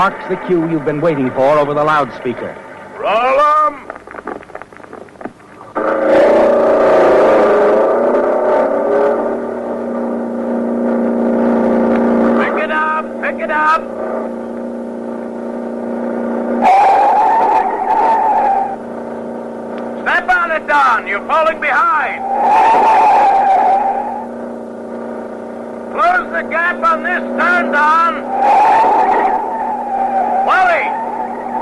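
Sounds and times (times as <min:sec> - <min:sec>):
racing car engines revving: 0:00.0 - 0:03.4, 0:05.6 - 0:31.6
speech: 0:00.0 - 0:04.0
brief screeching burst: 0:05.7 - 0:09.7, 0:16.6 - 0:25.2, 0:26.0 - 0:31.6.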